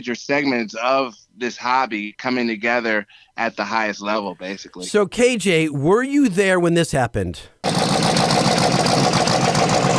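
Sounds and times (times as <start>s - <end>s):
speech: 0.0s - 7.8s
Dirty Hooker truck engine pulling onto dyno: 7.6s - 9.9s.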